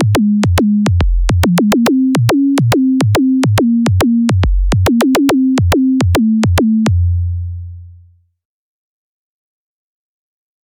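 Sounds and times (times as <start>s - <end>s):
raw kick drum: 0.0s - 6.9s.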